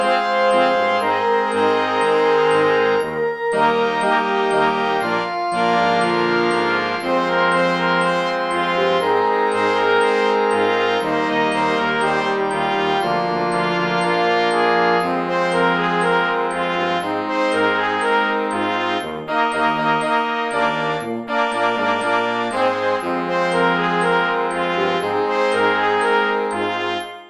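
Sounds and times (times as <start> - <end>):
click track: 0.0 - 27.2
music score: 0.0 - 27.2.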